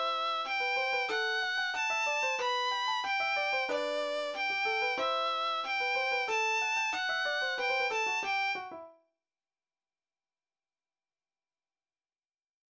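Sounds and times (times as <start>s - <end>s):
melody with harmony: 0.0s - 8.9s.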